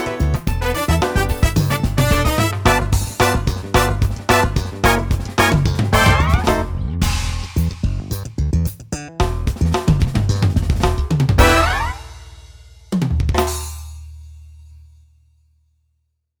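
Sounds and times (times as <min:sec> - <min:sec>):
funk music: 0:00.0 - 0:12.6.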